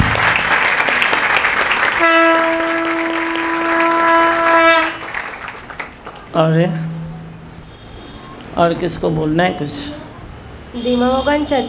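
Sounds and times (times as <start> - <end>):
audience applause: 0.0 - 6.4
speech: 6.5 - 6.8, 8.6 - 10.0, 10.7 - 11.6.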